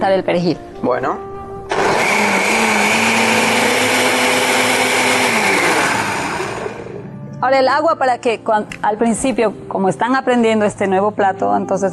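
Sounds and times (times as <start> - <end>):
speech: 0.0 - 2.8, 7.4 - 11.9
food processor blending a thick paste: 1.7 - 7.0.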